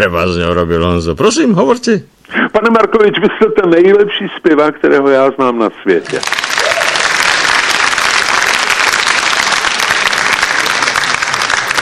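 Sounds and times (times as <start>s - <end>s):
speech: 0.0s - 6.8s
applause sound effect from a crowd: 6.0s - 11.8s.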